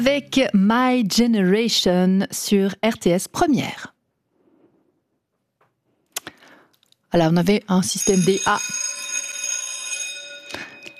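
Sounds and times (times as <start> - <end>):
speech: 0.0 - 3.9, 7.1 - 8.9
old primary school bell ringing: 7.9 - 10.9.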